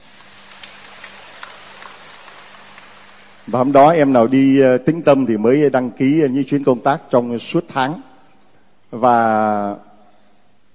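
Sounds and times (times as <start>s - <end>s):
audience applause: 0.0s - 4.0s
speech: 3.5s - 8.1s, 8.9s - 9.9s.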